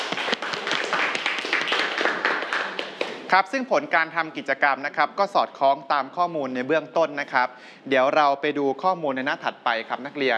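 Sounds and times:
students clapping for a classmate: 0.0 - 3.3
speech: 3.3 - 10.3.

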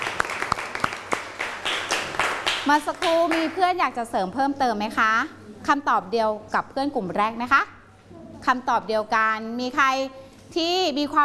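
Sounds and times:
class applauding a student: 0.0 - 3.6
speech: 2.6 - 11.2.

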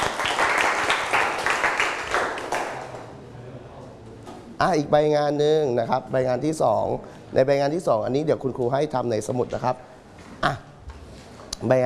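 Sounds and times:
students clapping for themselves: 0.0 - 3.1
speech: 4.6 - 10.7, 11.6 - 11.8.

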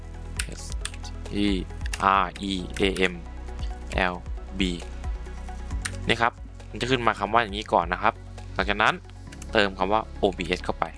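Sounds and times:
computer keyboard keys clicking: 0.4 - 1.1, 1.8 - 3.1, 5.8 - 6.1, 9.2 - 9.6
speech: 1.3 - 3.3, 3.9 - 4.9, 6.1 - 10.9.

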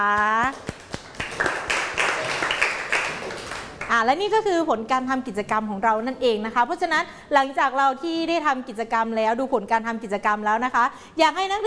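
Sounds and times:
speech: 0.0 - 0.6, 4.0 - 11.6
applause for a student group: 0.0 - 4.0.

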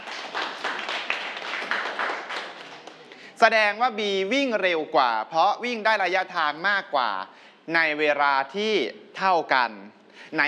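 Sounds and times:
students clapping for a classmate: 0.0 - 3.3
speech: 3.4 - 10.4.

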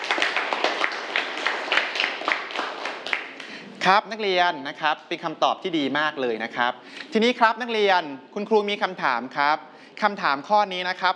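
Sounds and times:
students clapping hands: 0.0 - 3.7
speech: 3.9 - 11.1.

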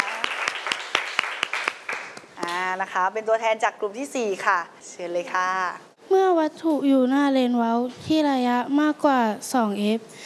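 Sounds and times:
classroom applause: 0.0 - 2.3
speech: 2.8 - 10.2.

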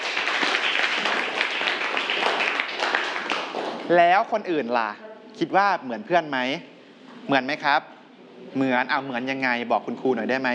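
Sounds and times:
students clapping: 0.0 - 4.2
speech: 3.9 - 7.9, 8.5 - 10.5.

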